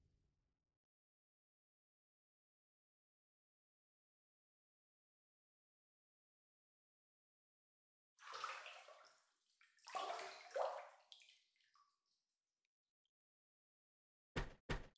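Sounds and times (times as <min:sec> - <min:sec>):
water sloshing and splashing in a bath as someone gets in: 0:08.2 - 0:12.3.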